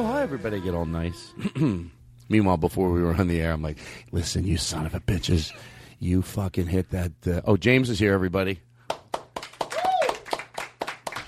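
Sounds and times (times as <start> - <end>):
speech: 0.0 - 8.7
audience applause: 8.8 - 11.2
vocal whoop: 9.7 - 10.3.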